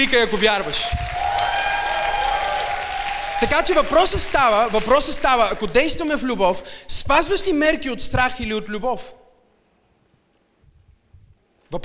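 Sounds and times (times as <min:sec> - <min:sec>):
speech: 0:00.0 - 0:01.2, 0:03.4 - 0:09.2
audience clapping: 0:00.0 - 0:06.4.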